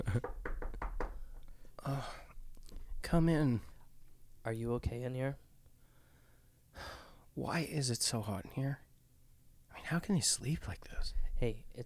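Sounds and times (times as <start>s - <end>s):
speech: 0.0s - 0.4s, 3.1s - 3.7s, 4.4s - 5.4s, 6.8s - 8.8s, 9.8s - 11.8s
knock on a door: 0.0s - 1.3s.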